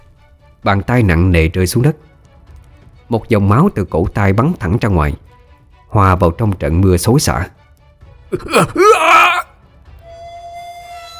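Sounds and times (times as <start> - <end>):
speech: 0.6 - 2.1, 3.1 - 7.6, 8.3 - 9.2
man screaming in pain: 8.4 - 9.5.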